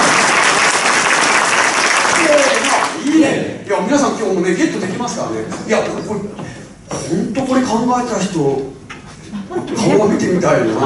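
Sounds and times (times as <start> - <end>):
seminar audience applause: 0.0 - 3.0
speech: 3.2 - 8.8, 9.5 - 10.8.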